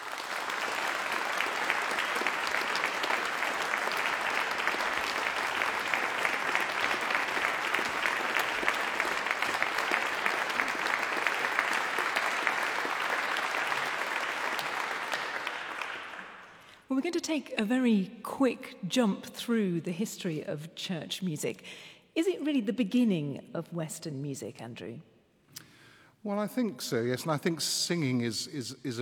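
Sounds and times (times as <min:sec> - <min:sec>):
audience applause welcoming performers at a church music event: 0:00.0 - 0:16.7
speech: 0:17.1 - 0:25.1, 0:26.2 - 0:29.0.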